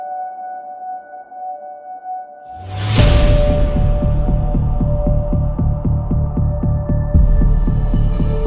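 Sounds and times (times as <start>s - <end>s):
modern intense orchestral music: 2.6s - 8.4s.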